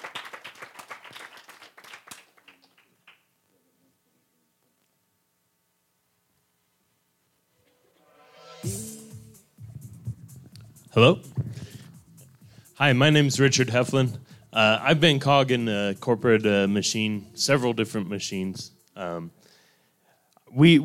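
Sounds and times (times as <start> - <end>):
audience applause: 0.0 - 3.2
speech: 10.9 - 11.4, 12.8 - 19.4, 20.6 - 20.8.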